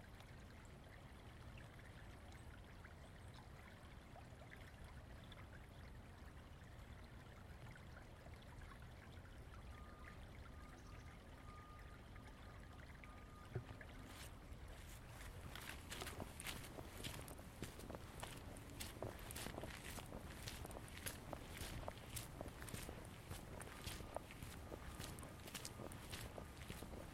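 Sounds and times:
low rush like flowing water in Ravenna Park, Seattle: 0.0s - 27.1s
faint tone: 9.7s - 14.0s
crunchy footsteps on a walk in Ravenna Park, Seattle: 14.9s - 27.1s.

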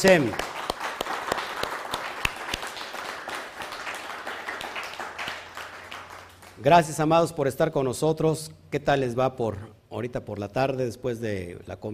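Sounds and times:
speech: 0.0s - 0.5s, 6.6s - 11.9s
audience applauding: 0.0s - 6.7s.

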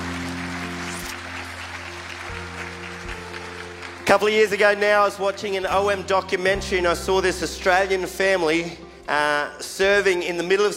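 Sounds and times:
audience applause at a church service welcoming a guest speaker: 0.0s - 5.7s
speech: 4.1s - 10.7s.

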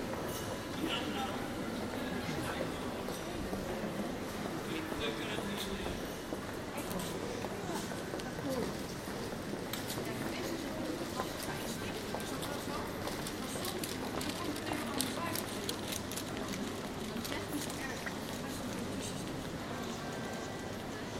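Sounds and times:
general atmosphere in The Hague's Passage: 0.0s - 21.1s.

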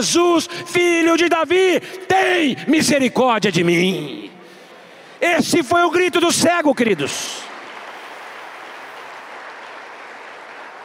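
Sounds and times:
speech: 0.0s - 4.3s, 5.2s - 7.5s
crowd applause: 6.7s - 10.8s.

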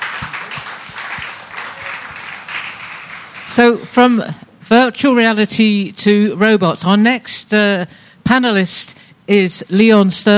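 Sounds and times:
crowd applause: 0.0s - 3.6s
speech: 3.6s - 10.3s.

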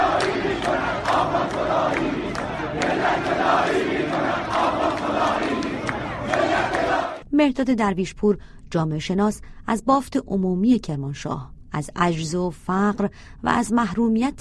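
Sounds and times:
protest crowd shouting slogans: 0.0s - 7.2s
speech: 7.4s - 14.3s.

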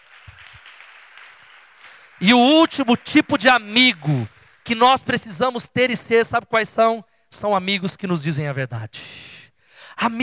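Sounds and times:
audience applause: 0.0s - 5.6s
speech: 2.2s - 9.3s, 9.9s - 10.2s.

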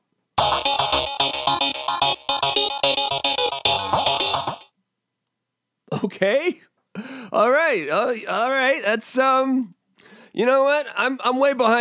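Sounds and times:
person doing an impression of strip-club music: 0.4s - 4.7s
speech: 6.2s - 9.8s, 10.4s - 11.7s.

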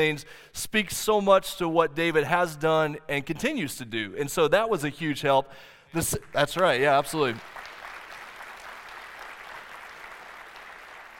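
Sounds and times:
speech: 0.0s - 7.6s
audience applause: 6.6s - 11.1s.

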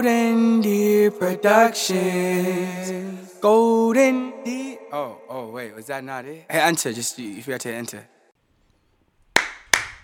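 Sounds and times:
speech: 0.0s - 8.2s
double hand clap for audio sync: 9.3s - 10.0s.

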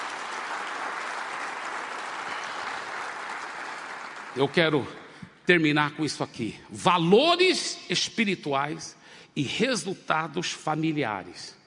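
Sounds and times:
audience applause: 0.0s - 4.8s
speech: 4.4s - 11.6s.

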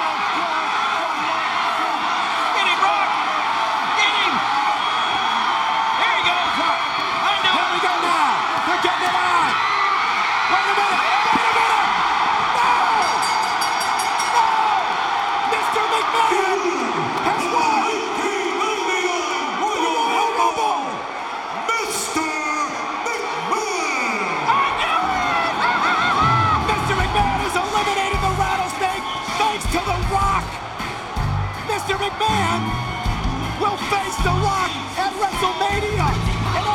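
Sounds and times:
huge shocked audience yelling and roaring: 0.0s - 36.7s.

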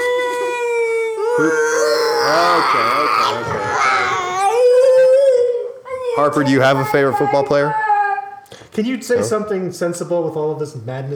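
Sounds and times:
child whining and sobbing: 0.0s - 8.5s
speech: 1.4s - 4.2s, 6.2s - 7.8s, 8.8s - 11.1s.

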